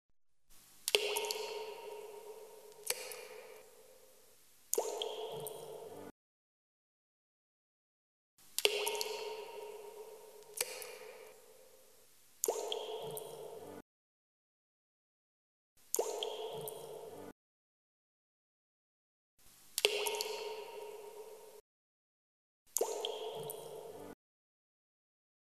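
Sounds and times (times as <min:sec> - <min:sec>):
falling drops: 0:00.9 - 0:03.7, 0:04.7 - 0:06.1, 0:08.6 - 0:11.4, 0:12.4 - 0:13.8, 0:15.9 - 0:17.3, 0:19.8 - 0:21.6, 0:22.7 - 0:24.2.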